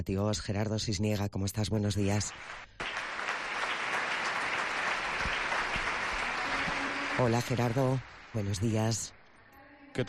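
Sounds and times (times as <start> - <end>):
speech: 0.0 - 2.8, 7.2 - 9.2
crowd applause at an inauguration ceremony: 2.2 - 9.1.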